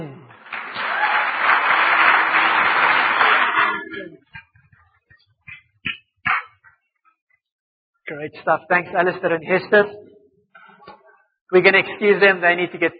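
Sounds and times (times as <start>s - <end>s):
crowd clapping: 0.0s - 4.3s
speech: 8.2s - 10.1s, 11.5s - 12.9s.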